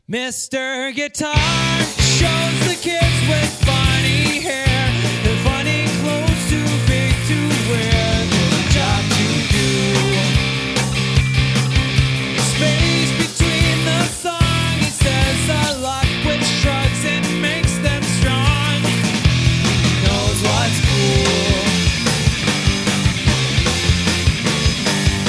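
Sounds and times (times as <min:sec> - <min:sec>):
guitar: 0:01.4 - 0:25.2.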